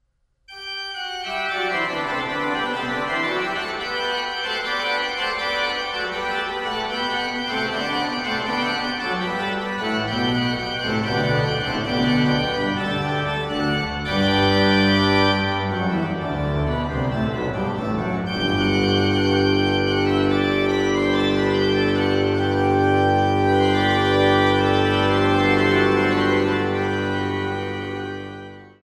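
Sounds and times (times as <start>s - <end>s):
organ: 0.5s - 28.8s.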